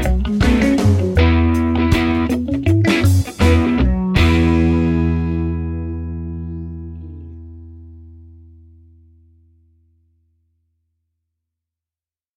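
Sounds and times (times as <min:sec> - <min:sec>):
reggae music: 0:00.0 - 0:08.4.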